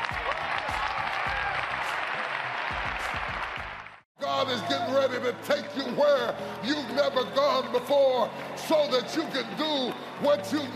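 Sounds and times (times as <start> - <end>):
audience clapping hands: 0.0 - 4.0, 6.4 - 10.7
speech: 4.4 - 10.7.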